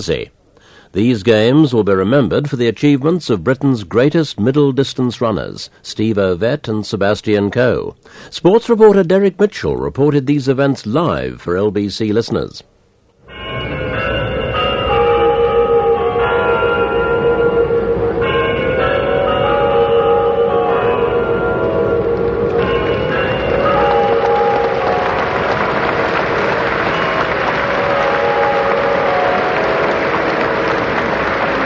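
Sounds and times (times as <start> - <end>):
speech: 0.0 - 12.7
Kremlin clock chimes for 4 o'clock: 13.2 - 31.6.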